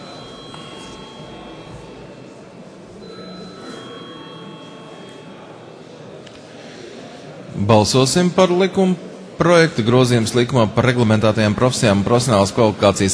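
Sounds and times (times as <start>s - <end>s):
parliament electric bell ringing: 0.0s - 5.8s
speech: 7.6s - 13.1s.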